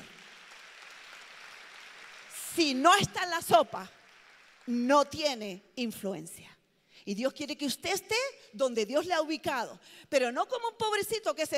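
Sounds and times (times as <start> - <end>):
audience applause: 0.0 - 2.5, 4.0 - 4.7
speech: 2.6 - 4.0, 4.7 - 11.5.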